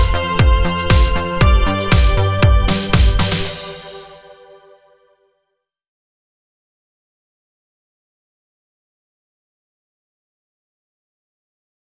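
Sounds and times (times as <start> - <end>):
80s Italo disco remix: 0.0 - 4.8.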